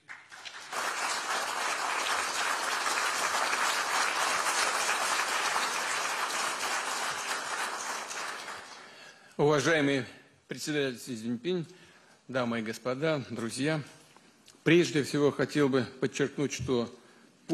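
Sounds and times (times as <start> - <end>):
warm applause: 0.0 - 9.1
speech: 9.4 - 14.0, 14.6 - 17.5.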